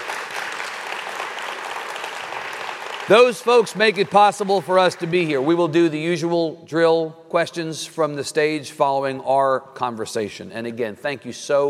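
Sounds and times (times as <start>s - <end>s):
audience applause: 0.0s - 5.8s
speech: 3.1s - 11.6s.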